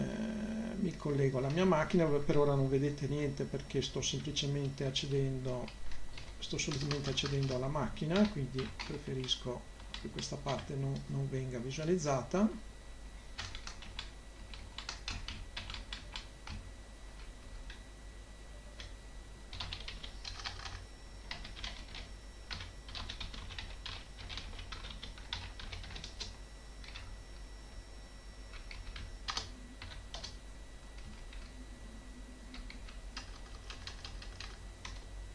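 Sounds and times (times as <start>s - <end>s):
steady low hum: 0.0s - 35.3s
speech: 0.8s - 12.7s
computer keyboard typing: 4.1s - 11.1s, 13.4s - 16.6s, 19.5s - 27.1s, 28.5s - 30.4s, 31.0s - 31.6s, 32.5s - 35.1s.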